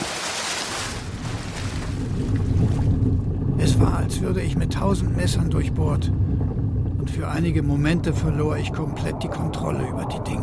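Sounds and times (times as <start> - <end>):
person diving headfirst from a sinking ship splashing into sea water: 0.0 - 3.0
churning rushing sea water: 0.0 - 10.4
deep steady rumble: 0.6 - 10.4
speech: 4.0 - 6.3, 7.1 - 10.4.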